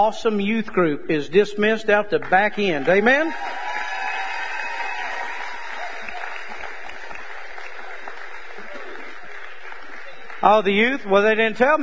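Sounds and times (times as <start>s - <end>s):
speech: 0.0s - 3.6s, 10.4s - 11.8s
audience applause: 2.6s - 11.0s.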